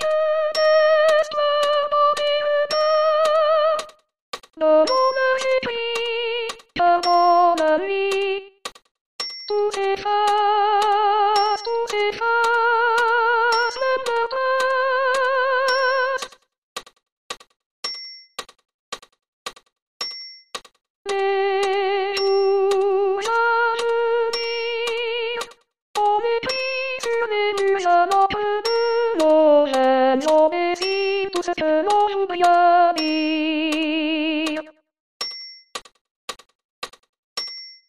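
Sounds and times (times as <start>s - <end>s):
soprano singing: 0.0s - 3.9s, 4.6s - 8.6s, 9.5s - 16.3s, 21.1s - 34.7s.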